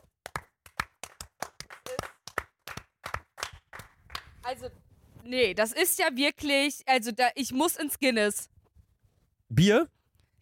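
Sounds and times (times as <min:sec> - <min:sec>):
hand clapping: 0:00.0 - 0:04.4
speech: 0:04.5 - 0:08.5, 0:09.5 - 0:10.0.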